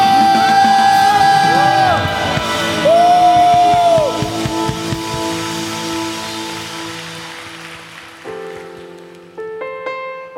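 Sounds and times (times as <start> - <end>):
crowd cheering shouts: 0.0 - 5.1
audience applause: 0.0 - 9.5.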